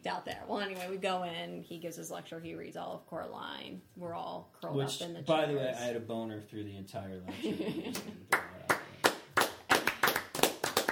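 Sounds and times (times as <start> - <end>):
speech: 0.0 - 8.7
people clapping: 8.0 - 10.9.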